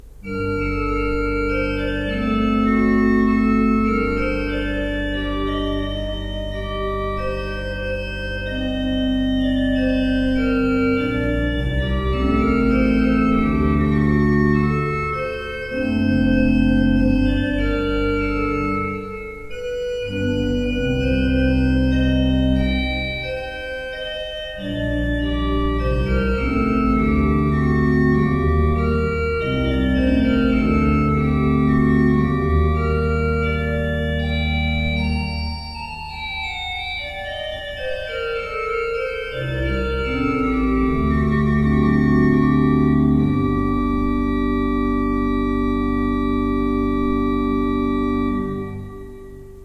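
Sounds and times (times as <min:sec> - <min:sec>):
pipe organs: 0:00.0 - 0:49.6.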